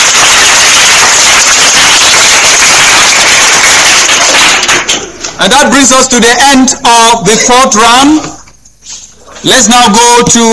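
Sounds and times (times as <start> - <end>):
audience applause: 0.0 - 5.1
speech: 5.4 - 8.4, 9.4 - 10.5.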